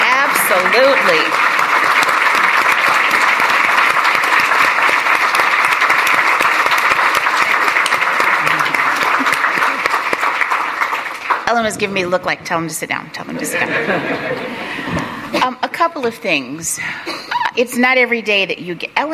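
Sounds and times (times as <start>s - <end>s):
audience applause: 0.0s - 11.5s
speech: 0.5s - 1.4s, 11.6s - 14.6s, 15.8s - 19.1s
laughter: 8.4s - 10.0s, 13.3s - 15.3s.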